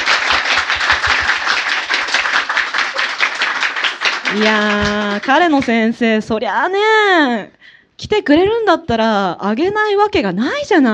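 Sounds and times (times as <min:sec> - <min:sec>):
audience applause at a live event: 0:00.0 - 0:05.8
speech: 0:04.4 - 0:10.9.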